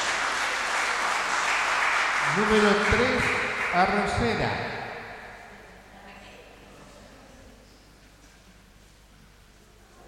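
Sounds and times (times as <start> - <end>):
audience applause: 0.0 - 4.6
speech: 2.3 - 4.8.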